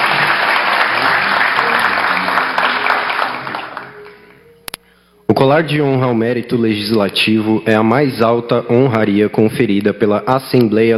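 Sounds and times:
crowd applause: 0:00.0 - 0:04.2
speech: 0:05.4 - 0:10.9.

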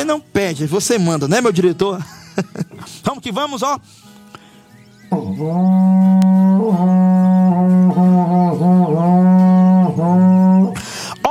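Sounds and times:
speech: 0:00.0 - 0:04.0, 0:05.1 - 0:07.1
laughter: 0:01.9 - 0:03.1
berrante cattle-herding horn blown: 0:05.1 - 0:10.8.

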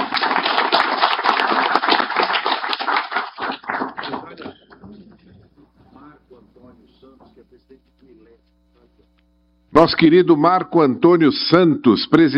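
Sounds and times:
audience applause: 0:00.0 - 0:05.0
speech: 0:09.8 - 0:12.3.

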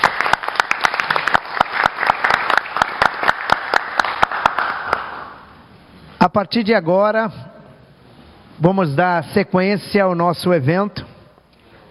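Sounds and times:
round of applause: 0:00.0 - 0:05.4
speech: 0:06.2 - 0:07.5, 0:08.6 - 0:11.0.

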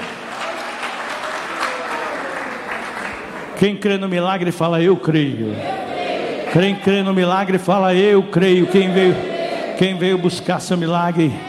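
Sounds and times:
audience clapping hands: 0:00.0 - 0:03.8
speech: 0:03.6 - 0:05.7, 0:06.5 - 0:11.4.

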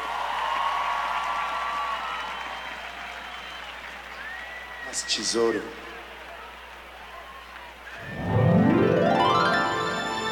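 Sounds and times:
audience applause: 0:00.0 - 0:10.2
speech: 0:04.9 - 0:05.9.

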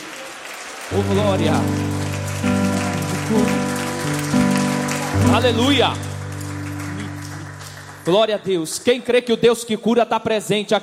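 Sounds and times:
crowd clapping: 0:00.0 - 0:09.1
speech: 0:00.9 - 0:01.9, 0:05.2 - 0:06.1, 0:08.0 - 0:10.8
sustained musical tones: 0:00.9 - 0:08.5.

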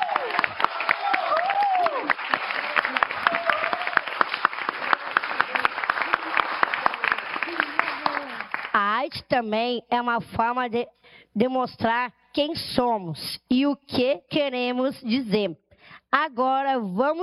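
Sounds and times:
voices cheering and calling out: 0:00.0 - 0:08.6
audience applause: 0:00.0 - 0:08.8
speech: 0:09.3 - 0:17.2.

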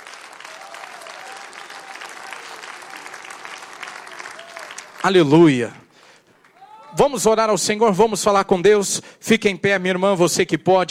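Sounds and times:
audience applauding: 0:00.0 - 0:07.1
speech: 0:05.0 - 0:05.8, 0:07.0 - 0:10.8.

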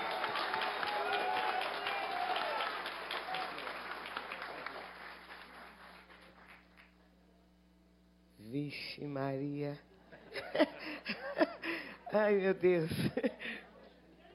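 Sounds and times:
audience applause: 0:00.0 - 0:06.9
speech: 0:08.7 - 0:09.9, 0:10.5 - 0:13.6
laughter: 0:10.1 - 0:12.0, 0:12.9 - 0:13.7.

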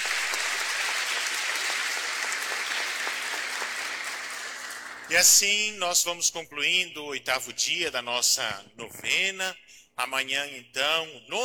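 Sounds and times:
crowd applauding: 0:00.0 - 0:05.4
speech: 0:05.1 - 0:11.4.

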